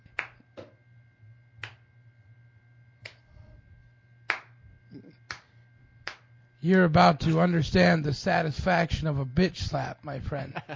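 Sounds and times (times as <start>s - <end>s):
slow clap: 0.1s - 0.4s, 1.6s - 1.8s, 4.3s - 4.6s, 5.3s - 6.3s
speech: 6.6s - 10.7s.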